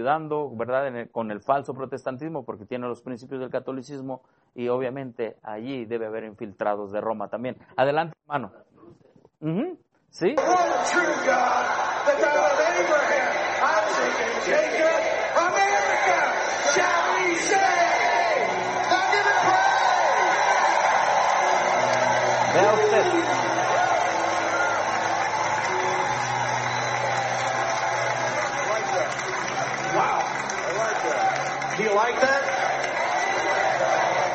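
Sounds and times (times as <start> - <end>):
speech: 0.0 - 13.2, 13.9 - 17.8
crowd chanting: 10.4 - 34.3.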